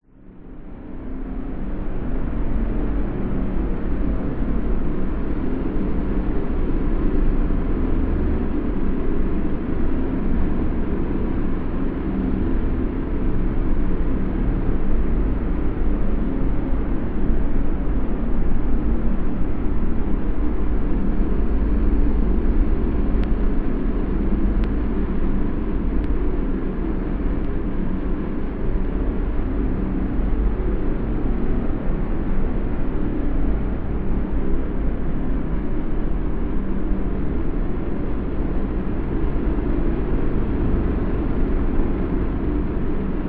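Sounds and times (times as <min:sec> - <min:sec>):
science fiction forcefield energy source slowly pulsating: 0:00.0 - 0:43.2.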